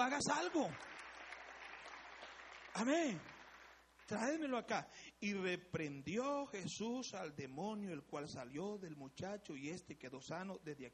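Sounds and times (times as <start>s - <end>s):
speech: 0.0s - 0.9s, 2.8s - 3.3s, 4.1s - 10.9s
audience applause: 0.0s - 3.9s.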